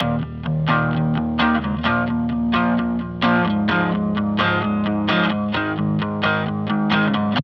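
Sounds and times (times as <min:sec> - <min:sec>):
guitar power chords: 0:00.0 - 0:07.4.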